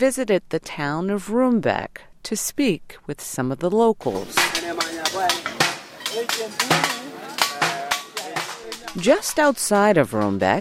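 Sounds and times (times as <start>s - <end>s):
speech: 0.0s - 5.5s, 6.2s - 7.2s, 8.9s - 10.5s
blacksmiths hammering old metal: 4.1s - 10.5s.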